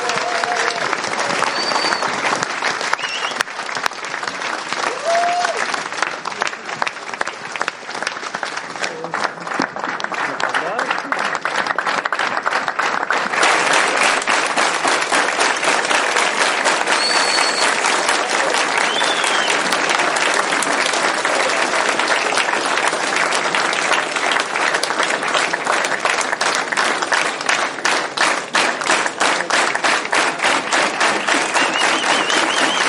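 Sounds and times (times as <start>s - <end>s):
stormy audience applause: 0.0s - 32.8s.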